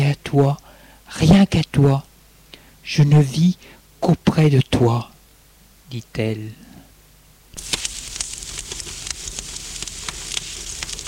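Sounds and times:
speech: 0:00.2 - 0:02.1, 0:02.8 - 0:05.1, 0:05.9 - 0:06.7
fireplace fire crackling: 0:07.5 - 0:11.0.

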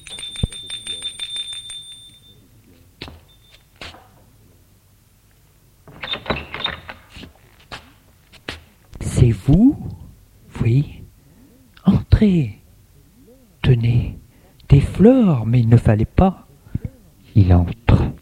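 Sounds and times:
doorbell ringing: 0:00.0 - 0:02.6
speech: 0:09.3 - 0:09.9, 0:10.6 - 0:11.0, 0:12.2 - 0:12.6, 0:13.7 - 0:14.1, 0:15.0 - 0:16.4, 0:17.4 - 0:17.9.

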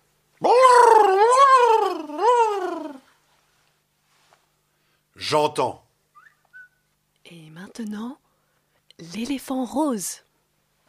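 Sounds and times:
voice imitating a perplexed octopus with a nasal moan: 0:00.4 - 0:03.1
speech: 0:05.3 - 0:05.8, 0:07.3 - 0:08.2, 0:09.0 - 0:10.2.

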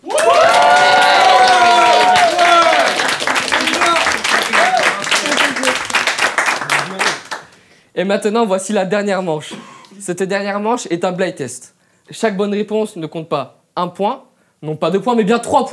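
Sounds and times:
audience applause and cheering: 0:00.0 - 0:07.6
speech: 0:08.0 - 0:15.7.

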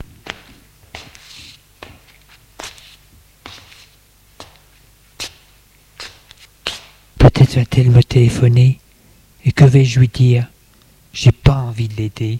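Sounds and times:
man's footsteps pacing back and forth in his living room: 0:00.0 - 0:07.1
faint low hum: 0:00.0 - 0:12.3
speech: 0:07.6 - 0:08.8, 0:09.4 - 0:10.5, 0:11.1 - 0:12.3.

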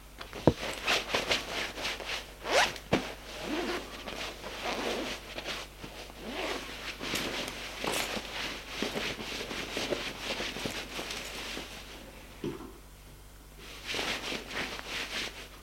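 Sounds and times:
fabric rustling: 0:00.4 - 0:12.0, 0:13.6 - 0:15.6
clothing zipper pulled while undressing: 0:02.4 - 0:05.2, 0:06.2 - 0:06.8.

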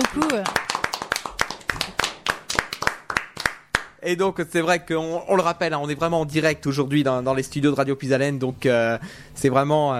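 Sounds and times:
small audience applauding a singer: 0:00.0 - 0:04.0
speech: 0:00.1 - 0:00.6, 0:04.0 - 0:09.9.

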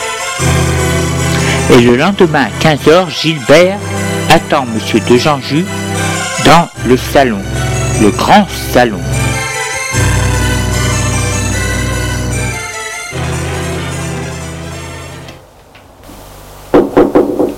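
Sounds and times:
sustained orchestral music: 0:00.0 - 0:15.4
speech: 0:01.7 - 0:09.2
quick sharp knocks on a door: 0:16.7 - 0:17.5.

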